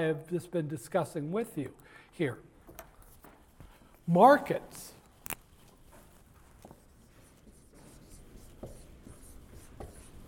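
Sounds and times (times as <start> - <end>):
speech: 0.0 - 2.5, 4.1 - 5.0
marker or chalk writing on a board during a business finance lecture: 6.6 - 10.2.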